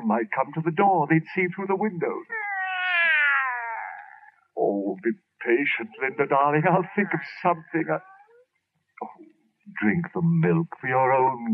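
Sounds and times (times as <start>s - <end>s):
speech: 0.1s - 2.4s, 4.6s - 8.1s, 9.0s - 11.5s
cat yowling: 2.3s - 4.3s, 5.9s - 8.4s.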